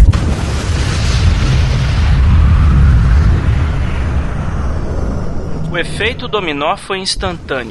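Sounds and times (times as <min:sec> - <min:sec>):
nuclear bomb explosion effect: 0:00.0 - 0:07.6
speech: 0:05.8 - 0:07.6.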